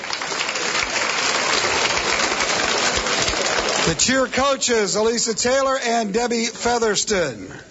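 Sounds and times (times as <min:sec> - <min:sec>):
audience applause for cheerleaders: 0:00.0 - 0:04.4
speech: 0:03.9 - 0:07.6.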